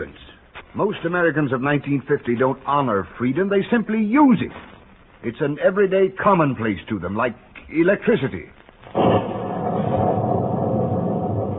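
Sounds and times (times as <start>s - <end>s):
speech: 0.0s - 8.6s
thunder crack and rumble: 8.8s - 11.5s.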